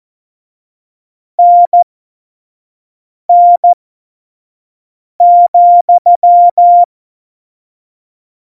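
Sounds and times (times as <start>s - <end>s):
morse code CW: 1.4s - 1.8s, 5.2s - 6.9s.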